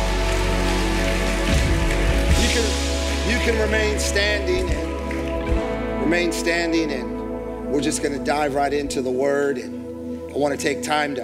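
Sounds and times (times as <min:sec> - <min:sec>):
audience applause: 0:00.0 - 0:06.5
speech: 0:03.4 - 0:04.9, 0:06.1 - 0:07.1, 0:07.7 - 0:11.2.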